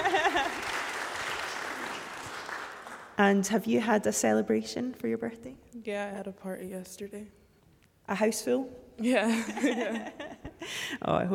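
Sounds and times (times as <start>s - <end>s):
laughter: 0.0s - 0.9s, 9.3s - 10.8s
crowd applauding: 0.0s - 3.2s
speech: 3.2s - 7.4s, 8.1s - 11.3s.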